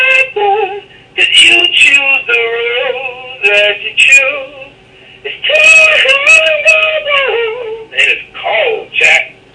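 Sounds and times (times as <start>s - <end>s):
person singing: 0.0s - 4.7s, 5.3s - 8.2s.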